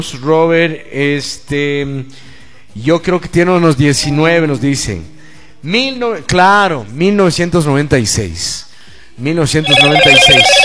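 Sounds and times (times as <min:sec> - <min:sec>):
speech: 0:00.0 - 0:10.6
telephone ringing with an incoming call to a radio show: 0:09.6 - 0:10.6.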